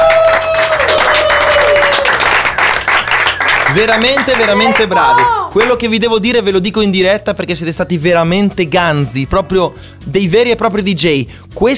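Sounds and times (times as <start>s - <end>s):
audience applause: 0.0s - 5.8s
speech: 3.7s - 11.7s.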